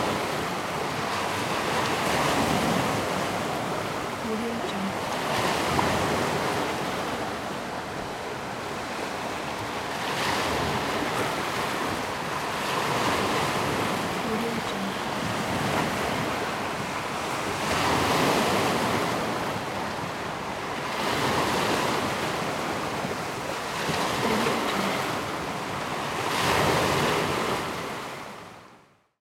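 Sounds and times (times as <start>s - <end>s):
sea waves on a rocky shore: 0.0s - 28.9s.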